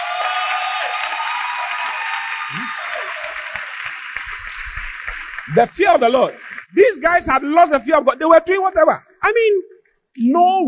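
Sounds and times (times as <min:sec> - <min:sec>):
audience clapping: 0:00.0 - 0:07.4
speech: 0:05.5 - 0:10.6.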